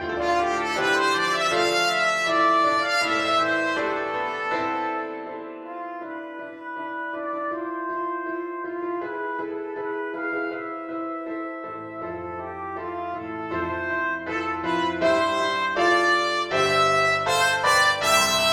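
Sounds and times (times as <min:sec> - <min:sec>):
trumpet, flugelhorn or cornet melody: 0:00.0 - 0:18.5.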